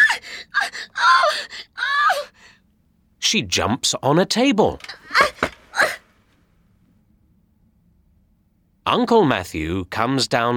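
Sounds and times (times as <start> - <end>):
woman screaming in fright: 0.0 - 2.4
speech: 3.3 - 5.4, 8.9 - 10.5.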